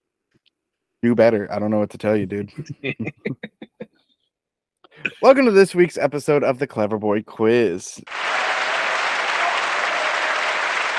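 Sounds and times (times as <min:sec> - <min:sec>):
speech: 0:01.0 - 0:03.6, 0:05.2 - 0:08.2
applause sound effect: 0:08.1 - 0:10.9.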